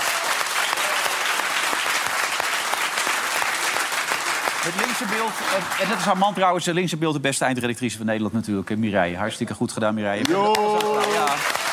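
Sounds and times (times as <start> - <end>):
indoor studio audience applause: 0.0 - 6.6, 10.2 - 11.7
speech: 4.6 - 11.6.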